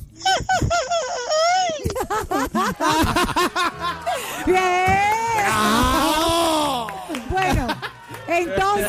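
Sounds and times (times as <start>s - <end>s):
laughter: 0.2s - 4.6s, 5.3s - 8.8s
man imitating a famous singer's signature yell: 5.4s - 7.0s.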